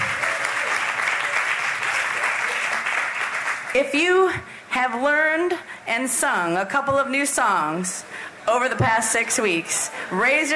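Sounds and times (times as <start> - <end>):
crowd applause: 0.0 - 3.8
speech: 3.7 - 10.5.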